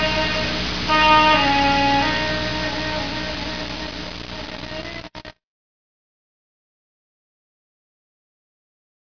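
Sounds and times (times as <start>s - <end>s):
blowing: 0.0s - 5.3s.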